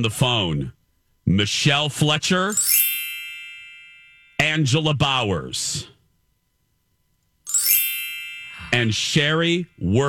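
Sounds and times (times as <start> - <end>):
speech: 0.0 - 2.9, 4.5 - 5.9, 8.7 - 10.0
twinkling chime sound effect: 2.5 - 4.5, 7.5 - 10.0.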